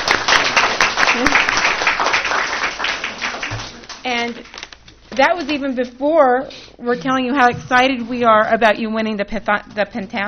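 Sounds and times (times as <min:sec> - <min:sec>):
audience applauding: 0:00.0 - 0:04.0
speech: 0:05.2 - 0:10.2.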